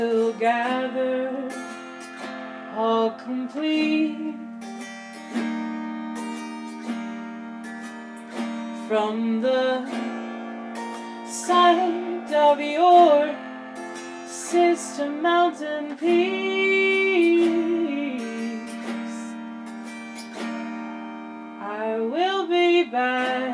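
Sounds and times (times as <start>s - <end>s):
person singing an original song: 0.0s - 1.8s, 2.7s - 4.4s, 8.8s - 10.3s, 10.9s - 13.4s, 14.0s - 19.4s, 21.6s - 23.5s
autoharp: 0.0s - 23.5s.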